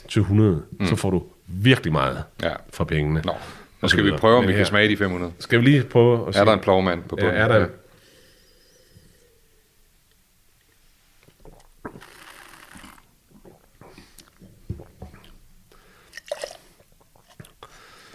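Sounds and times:
speech: 0:00.0 - 0:07.8
taster spitting out a sampled drink: 0:11.4 - 0:15.4.

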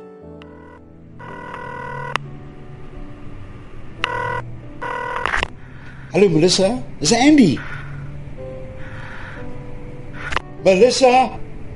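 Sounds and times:
telephone ringing: 0:00.4 - 0:02.2, 0:04.0 - 0:05.5
steady low hum: 0:00.5 - 0:10.2
speech: 0:06.1 - 0:07.7, 0:10.6 - 0:11.4.

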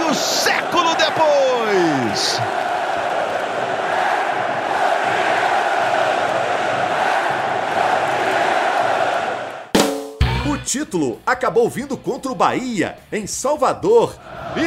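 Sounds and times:
stadium crowd roaring and chanting celebrating championship win: 0:00.0 - 0:09.7, 0:14.2 - 0:14.6
speech: 0:10.7 - 0:14.6.

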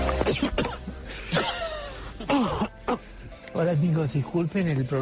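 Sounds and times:
person coughing after a soft drink went down wrong: 0:00.2 - 0:03.1
speech: 0:00.3 - 0:00.6, 0:03.6 - 0:05.0.

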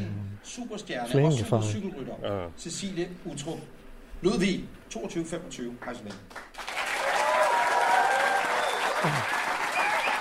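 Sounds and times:
speech: 0:00.5 - 0:06.6, 0:09.0 - 0:09.4
audience applause: 0:06.3 - 0:10.1
crowd cheering and whooping: 0:06.8 - 0:10.1.

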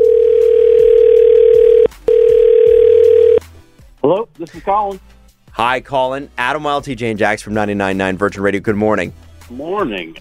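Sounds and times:
telephone dial tone while placing a call: 0:00.0 - 0:03.4
speech: 0:04.1 - 0:10.1.

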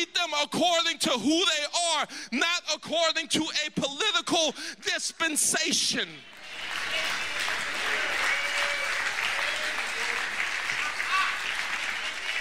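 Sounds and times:
speech: 0:00.3 - 0:06.4
partial audience clapping: 0:06.3 - 0:12.4.

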